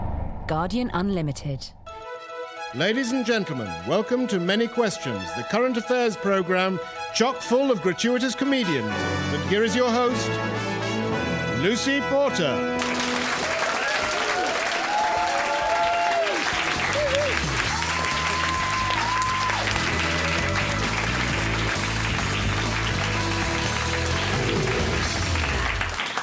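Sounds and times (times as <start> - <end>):
speech: 0.5 - 1.8, 2.7 - 10.7, 11.6 - 12.8
audience applause: 12.8 - 26.2.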